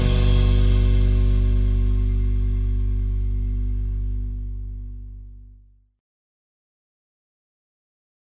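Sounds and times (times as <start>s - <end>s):
organ backing track: 0.0s - 5.5s.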